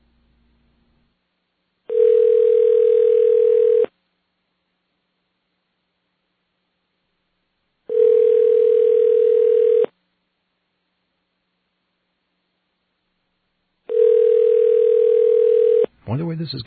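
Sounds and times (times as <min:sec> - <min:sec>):
Japanese telephone ringing tone: 0:01.9 - 0:03.9, 0:07.9 - 0:09.9, 0:13.9 - 0:15.9
speech: 0:16.4 - 0:16.6.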